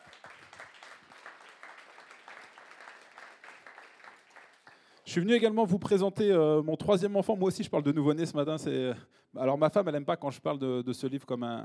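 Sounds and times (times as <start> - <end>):
audience applause: 0.0 - 5.0
speech: 5.1 - 11.6.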